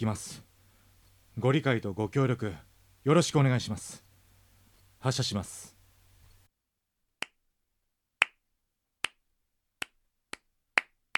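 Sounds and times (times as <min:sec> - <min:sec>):
speech: 0:00.0 - 0:00.5, 0:01.4 - 0:04.1, 0:05.0 - 0:05.7
one person clapping hands: 0:09.8 - 0:11.1.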